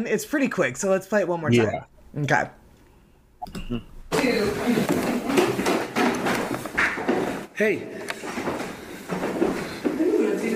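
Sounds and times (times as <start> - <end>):
speech: 0.0 - 2.6, 3.4 - 5.0, 7.6 - 8.5
footsteps: 4.1 - 10.5.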